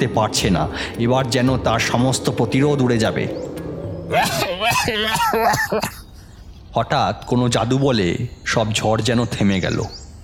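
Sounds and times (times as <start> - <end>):
speech: 0.0 - 6.0, 6.8 - 10.0
nasal-voiced coughing in a spoken story: 4.1 - 6.4.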